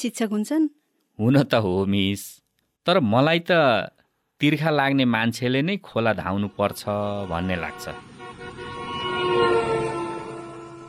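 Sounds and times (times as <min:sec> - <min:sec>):
speech: 0:00.0 - 0:08.6
bus passing on a dusty unpaved hill road: 0:06.0 - 0:10.8.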